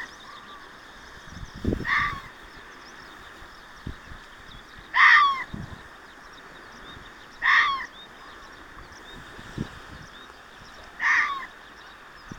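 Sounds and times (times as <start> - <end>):
fox barking: 1.8 - 2.3, 4.9 - 5.4, 7.4 - 7.9, 11.0 - 11.5.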